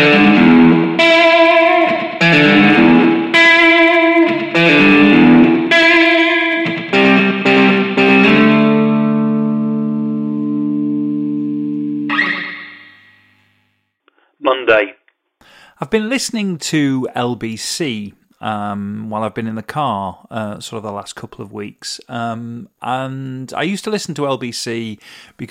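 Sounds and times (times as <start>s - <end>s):
jangly electric guitar music: 0.0s - 13.5s
speech: 15.9s - 25.5s.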